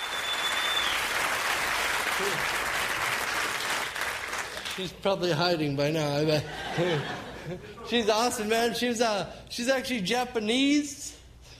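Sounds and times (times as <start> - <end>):
audience applauding: 0.0 - 4.9
speech: 2.2 - 2.6, 4.8 - 11.2
laughter: 6.3 - 8.1.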